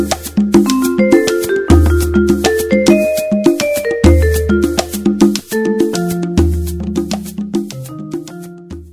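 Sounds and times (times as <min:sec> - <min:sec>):
drum: 0:00.0 - 0:08.9.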